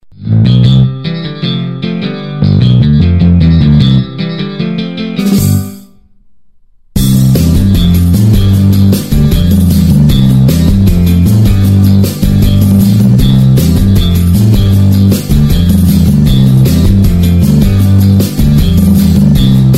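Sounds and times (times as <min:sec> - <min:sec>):
guitar: 0:00.0 - 0:19.7.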